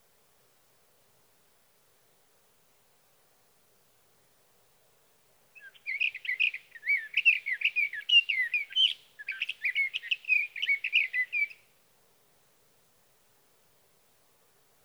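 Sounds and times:
sage thrasher singing: 5.6s - 11.6s.

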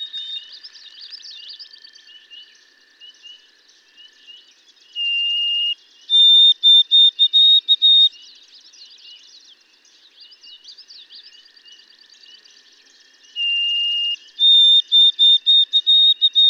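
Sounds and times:
white-throated sparrow singing pure whistles: 5.0s - 8.1s, 13.4s - 16.4s.

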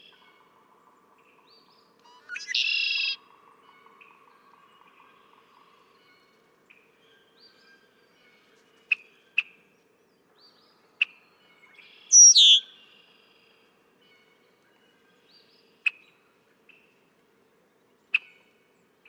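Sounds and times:
red-winged blackbird singing: 2.1s - 3.2s, 12.1s - 12.7s.

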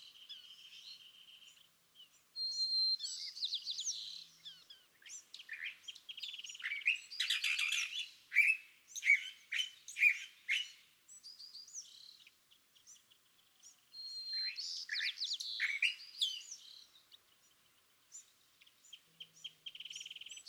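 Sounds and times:
California thrasher singing: 0.0s - 20.4s.

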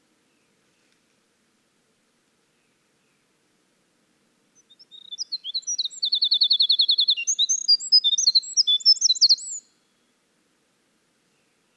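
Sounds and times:
Winter wren song: 4.6s - 9.8s.

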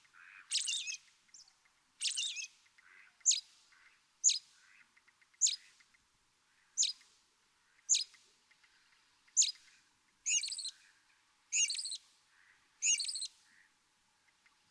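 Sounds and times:
American robin singing caroling phrases: 0.5s - 2.5s, 5.4s - 5.6s, 6.8s - 7.0s, 7.9s - 8.2s, 9.4s - 9.6s, 10.3s - 10.8s, 11.5s - 12.0s, 12.8s - 13.3s.

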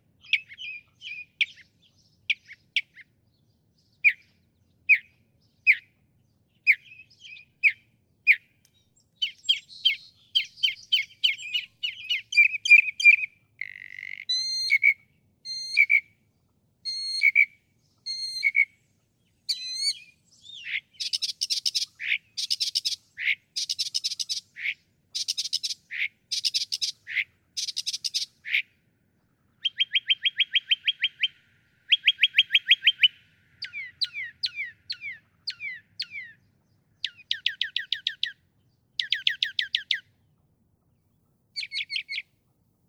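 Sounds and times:
Northern mockingbird singing: 0.2s - 40.3s, 41.6s - 42.3s.

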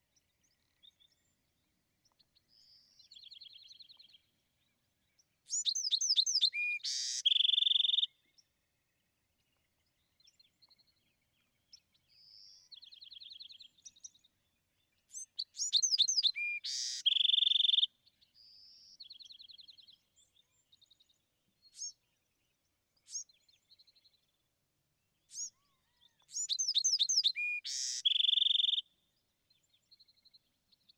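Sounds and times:
Bewick's wren singing: 5.5s - 8.1s, 15.4s - 17.9s, 26.3s - 28.8s.

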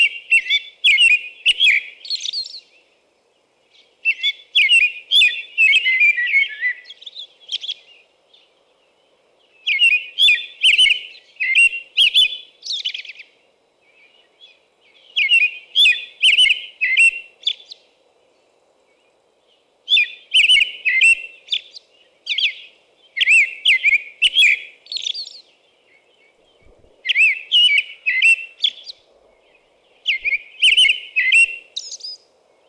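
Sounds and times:
American robin whistled caroling song: 0.0s - 2.7s, 4.0s - 7.8s, 9.6s - 13.2s, 15.1s - 17.8s, 19.9s - 25.5s, 27.0s - 29.0s, 30.0s - 32.2s.

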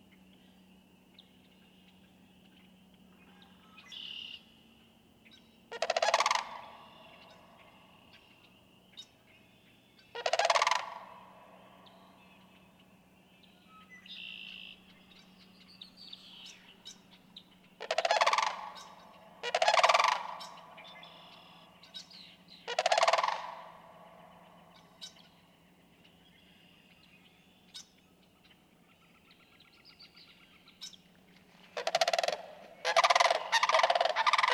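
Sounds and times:
sandhill crane rattling calls: 5.7s - 7.6s, 10.1s - 11.6s, 17.6s - 25.2s, 31.7s - 34.5s.

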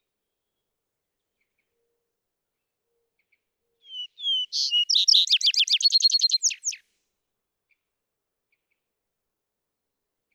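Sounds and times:
Vesper sparrow whistles and trill: 3.9s - 6.8s.

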